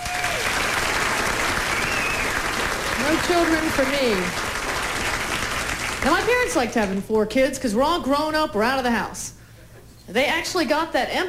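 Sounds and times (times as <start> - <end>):
audience applause: 0.0 - 6.6
faint whistle: 1.7 - 2.4
speech: 3.1 - 4.4, 6.0 - 9.4, 10.1 - 11.2.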